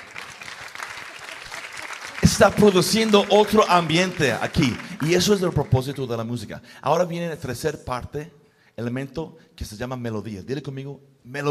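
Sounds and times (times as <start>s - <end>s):
applause from a group: 0.0s - 6.3s
speech: 2.2s - 11.4s.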